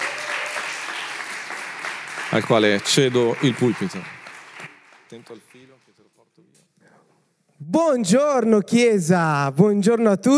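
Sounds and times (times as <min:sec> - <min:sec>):
audience applauding: 0:00.0 - 0:06.2
speech: 0:02.3 - 0:04.2, 0:05.1 - 0:10.3.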